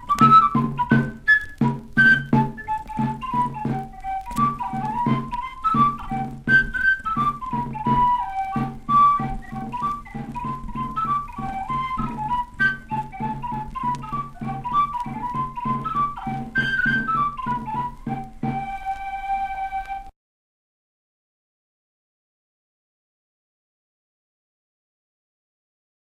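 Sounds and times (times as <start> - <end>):
bagpipes: 0.0 - 20.1.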